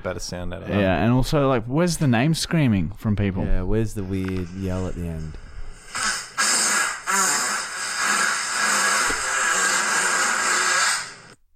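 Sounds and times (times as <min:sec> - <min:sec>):
speech: 0:00.0 - 0:05.4
loud fart: 0:05.8 - 0:11.4.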